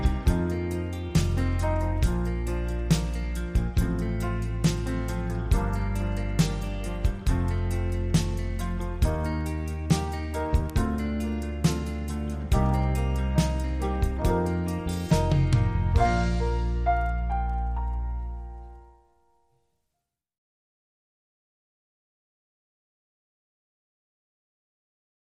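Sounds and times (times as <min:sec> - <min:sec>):
strings: 0:00.0 - 0:18.7.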